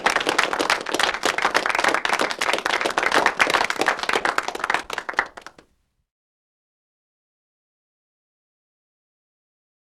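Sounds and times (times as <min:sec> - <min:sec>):
small crowd applause: 0:00.0 - 0:05.7.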